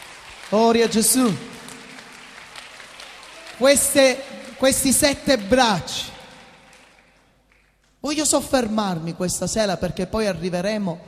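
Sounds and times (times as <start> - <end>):
church congregation applauding: 0.0 - 8.0
speech: 0.5 - 1.5, 3.6 - 6.2, 8.0 - 11.0.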